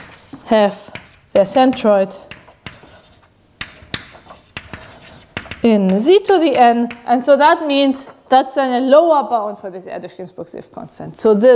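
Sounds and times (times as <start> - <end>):
writing on a board during a maths lecture: 0.0 - 7.0
speech: 0.5 - 2.3, 5.6 - 11.5.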